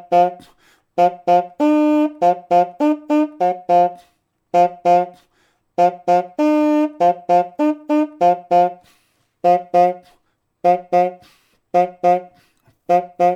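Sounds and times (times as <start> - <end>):
bassoon playing: 0.0 - 5.2, 5.8 - 13.3.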